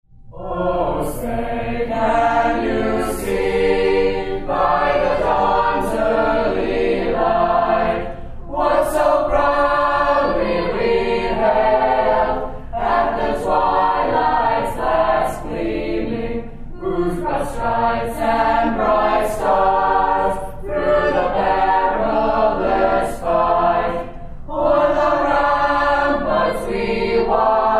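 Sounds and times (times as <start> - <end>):
national anthem: 0.3 - 27.7.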